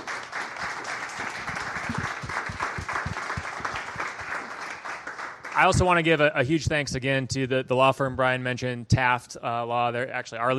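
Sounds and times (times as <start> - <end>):
audience applause: 0.0 - 5.9
speech: 5.6 - 10.5.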